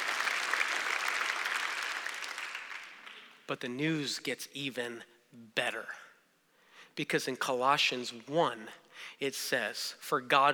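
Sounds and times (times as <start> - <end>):
audience clapping: 0.0 - 3.5
speech: 3.5 - 6.1, 7.0 - 10.5.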